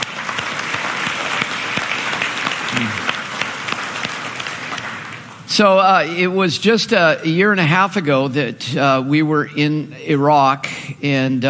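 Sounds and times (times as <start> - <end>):
audience applause: 0.0 - 5.4
speech: 2.8 - 3.0, 5.6 - 11.4.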